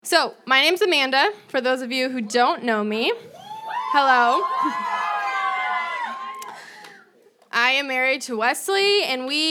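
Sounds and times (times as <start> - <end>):
speech: 0.0 - 4.9, 7.6 - 9.4
audience cheering: 3.3 - 7.2.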